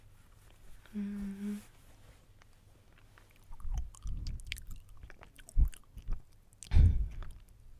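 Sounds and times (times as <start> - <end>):
crunchy chewing of a young, firm banana: 2.3 - 7.6.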